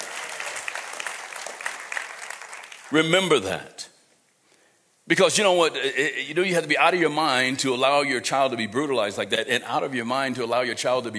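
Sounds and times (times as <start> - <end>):
audience applause: 0.0 - 3.0
speech: 2.9 - 3.9, 5.1 - 11.1.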